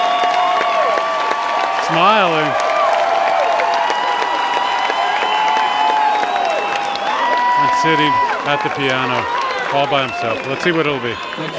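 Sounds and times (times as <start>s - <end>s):
high cheering and whistle-like tones: 0.0s - 11.5s
loud sustained concert applause from a large crowd: 0.0s - 11.5s
speech: 1.9s - 2.6s, 7.8s - 11.5s.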